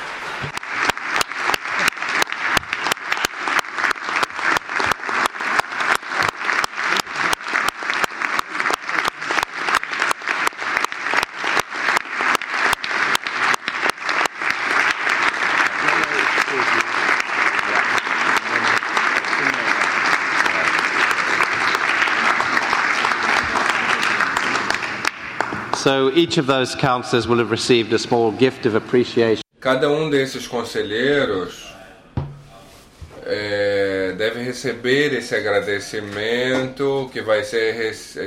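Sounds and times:
audience applause: 0.0 - 26.2
speech: 25.8 - 31.7, 34.2 - 38.2.

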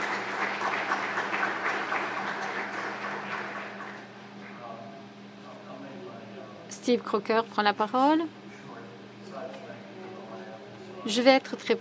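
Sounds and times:
roomful of people clapping to approve a motion: 0.0 - 4.8
speech: 6.8 - 8.4, 11.1 - 11.7.

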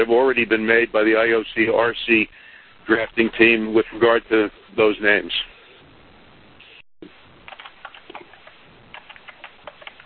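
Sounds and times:
speech: 0.0 - 5.5
typing on a keyboard: 7.5 - 10.0.

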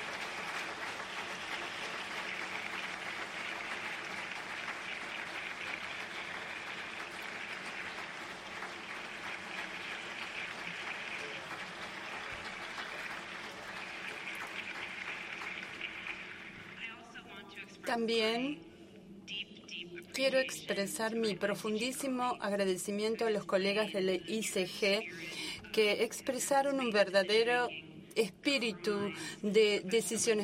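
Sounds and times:
audience applause: 0.0 - 17.0
speech: 17.9 - 18.7, 20.2 - 30.4.

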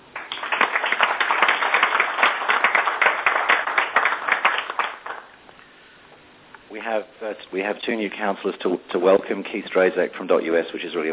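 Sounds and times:
applause at a council meeting: 0.0 - 5.4
speech: 6.8 - 11.1.

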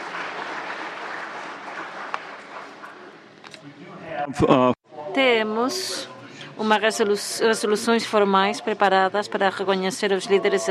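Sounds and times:
audience applause: 0.0 - 3.3
speech: 4.3 - 10.6.

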